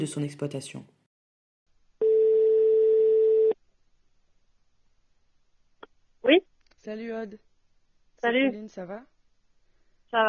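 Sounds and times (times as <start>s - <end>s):
speech: 0.0s - 1.0s, 6.2s - 7.5s, 8.2s - 9.1s
ringback tone on an outgoing phone call: 2.0s - 3.6s.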